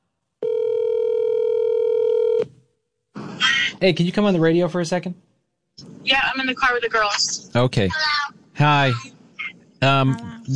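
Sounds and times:
phone ringing tone: 0.4s - 2.5s
speech: 3.8s - 9.1s, 9.8s - 10.5s.

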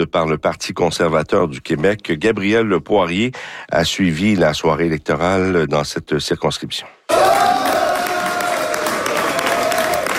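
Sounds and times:
speech: 0.0s - 7.3s
supporters cheering at election victory: 7.1s - 10.1s.

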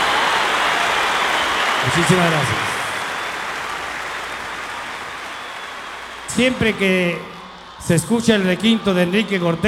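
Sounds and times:
audience applause: 0.0s - 9.6s
speech: 1.8s - 2.7s, 6.4s - 9.6s.

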